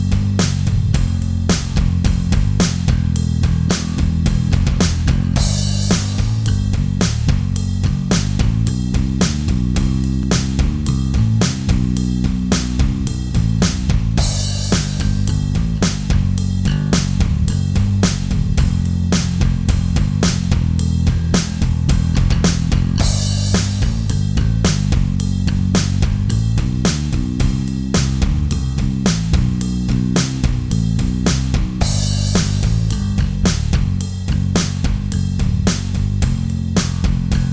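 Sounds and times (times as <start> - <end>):
bass guitar: 0.0 - 37.5.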